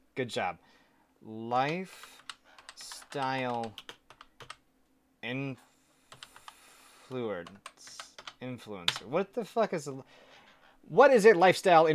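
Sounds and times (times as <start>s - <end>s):
speech: 0.2s - 2.2s, 2.8s - 3.9s, 5.2s - 5.7s, 7.1s - 10.2s, 10.8s - 11.9s
typing on a computer keyboard: 1.9s - 4.6s, 6.1s - 6.6s, 7.4s - 9.0s.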